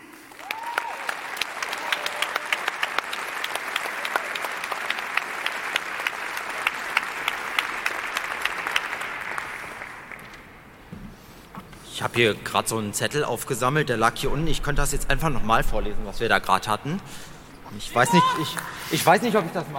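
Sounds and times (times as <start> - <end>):
audience applause: 0.0 - 10.7
speech: 12.0 - 19.7.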